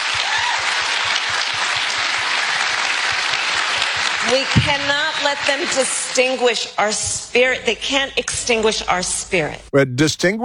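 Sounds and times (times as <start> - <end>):
applause at a rally: 0.0 - 6.2
speech: 4.3 - 10.4.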